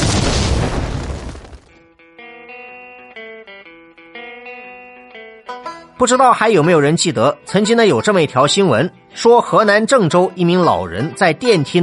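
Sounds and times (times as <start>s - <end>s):
explosion sound effect: 0.0s - 1.8s
speech: 6.0s - 11.8s.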